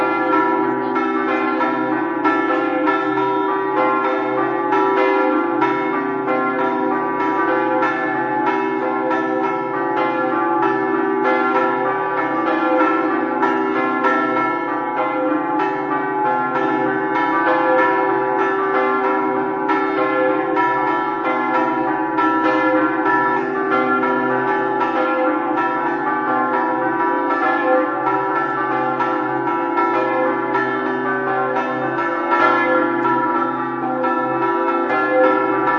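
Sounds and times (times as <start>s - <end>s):
bells ringing: 0.0s - 35.7s.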